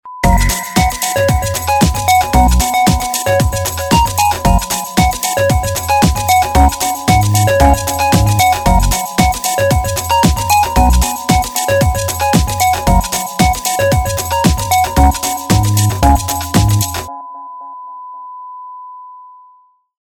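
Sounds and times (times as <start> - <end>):
air groove music: 0.2 - 17.1.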